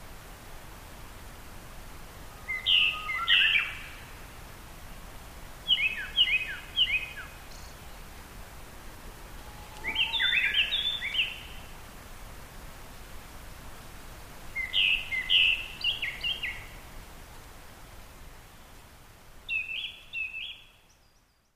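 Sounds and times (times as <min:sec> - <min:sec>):
constant background hiss: 0:00.0 - 0:21.5
Japanese thrush song: 0:02.4 - 0:04.0, 0:05.6 - 0:07.7, 0:09.5 - 0:11.7, 0:14.6 - 0:16.8, 0:19.5 - 0:21.4.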